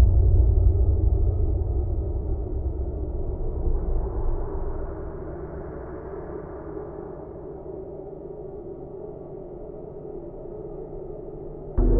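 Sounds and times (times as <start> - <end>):
deep hollow growl impact: 0.0 - 4.9, 11.8 - 11.9.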